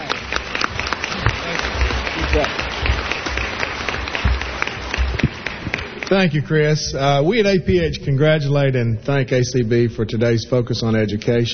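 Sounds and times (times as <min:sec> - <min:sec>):
audience applauding to welcome the American Printing House for the Blind director: 0:00.0 - 0:06.8
speech: 0:06.1 - 0:11.5.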